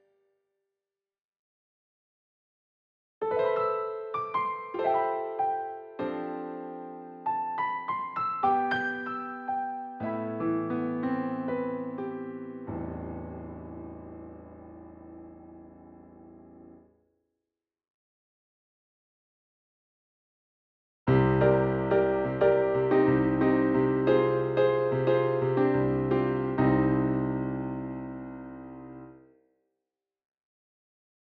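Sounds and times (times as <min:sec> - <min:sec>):
piano: 0:03.2 - 0:17.0, 0:21.1 - 0:29.2.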